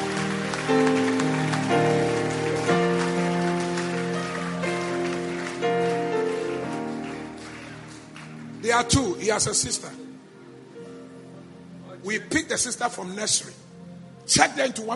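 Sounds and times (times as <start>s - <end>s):
audience clapping: 0.0s - 9.2s
speech: 8.8s - 10.0s, 12.1s - 13.7s, 14.3s - 14.9s.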